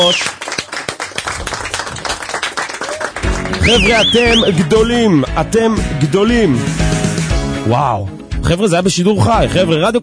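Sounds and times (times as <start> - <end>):
speech: 0.0 - 0.4, 3.6 - 6.9, 7.6 - 10.0
audience clapping: 0.0 - 4.4.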